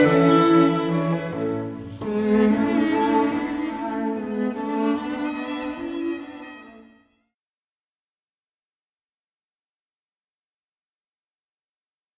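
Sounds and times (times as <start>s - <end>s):
clarinet: 0.0s - 7.2s.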